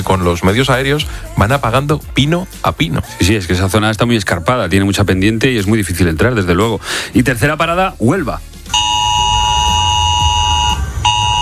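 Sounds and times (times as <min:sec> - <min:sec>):
speech: 0:00.0 - 0:08.9
mobile phone emergency alert tone: 0:08.7 - 0:11.4.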